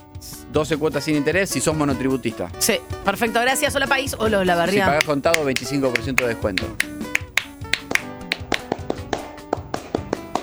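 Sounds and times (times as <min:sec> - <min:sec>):
speech: 0:00.5 - 0:06.9
sparse handclapping: 0:03.1 - 0:10.4.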